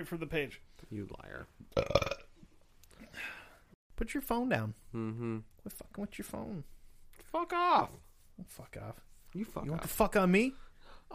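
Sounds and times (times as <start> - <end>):
speech: 0.0 - 2.2, 4.0 - 11.1
burp: 1.7 - 2.4.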